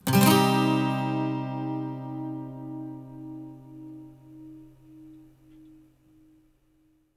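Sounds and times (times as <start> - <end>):
12-string electric guitar loop in C minor: 0.0 - 5.3
12-string acoustic guitar loop in C minor: 0.0 - 5.9.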